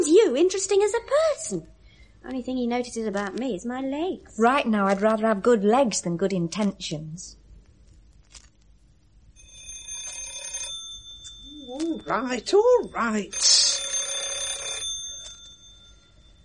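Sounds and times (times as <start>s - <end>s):
speech: 0.0s - 7.4s, 11.8s - 13.8s
doorbell ringing: 9.4s - 16.4s.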